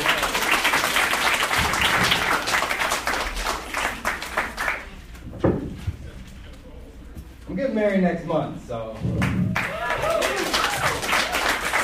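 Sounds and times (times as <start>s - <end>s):
audience applause for comedian: 0.0s - 5.0s, 9.2s - 11.8s
speech: 7.8s - 9.4s
person whooping: 9.6s - 11.1s.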